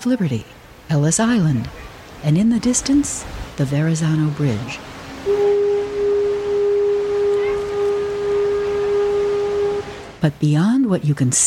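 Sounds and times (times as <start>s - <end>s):
speech: 0.0s - 5.4s, 10.2s - 11.4s
ferry boat horn as it pulls out of the slip: 4.2s - 10.2s.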